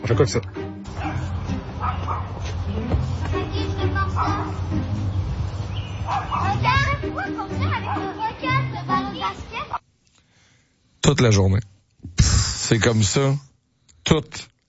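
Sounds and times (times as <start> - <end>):
speech: 0.1 - 1.1, 2.7 - 5.1, 6.1 - 8.6, 11.1 - 13.5, 14.1 - 14.6
small dog barking nonstop: 0.9 - 2.4, 4.1 - 4.6, 6.0 - 8.3.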